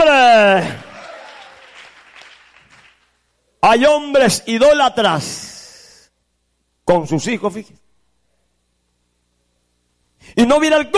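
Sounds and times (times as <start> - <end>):
audience applauding: 0.6 - 3.2
speech: 3.7 - 5.5, 6.9 - 7.8, 10.2 - 10.9.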